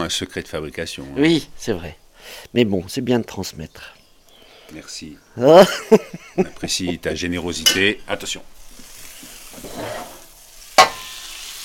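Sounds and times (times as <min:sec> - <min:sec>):
speech: 0:00.0 - 0:04.0, 0:04.7 - 0:08.6
laughter: 0:05.4 - 0:07.1
food sizzling in a buttered frying pan as it is flipped: 0:07.6 - 0:11.6.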